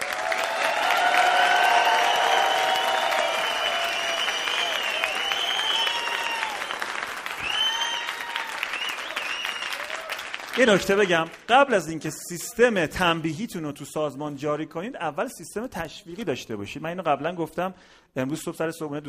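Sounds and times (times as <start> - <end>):
audience applause: 0.0 - 11.5
whoops and voices: 0.4 - 6.8, 7.4 - 10.1
speech: 10.6 - 19.0.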